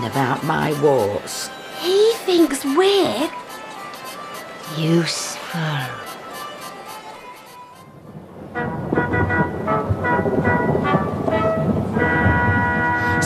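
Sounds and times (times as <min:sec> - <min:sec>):
speech: 0:00.0 - 0:03.4, 0:04.7 - 0:06.1
thunder rumbling: 0:07.9 - 0:13.2.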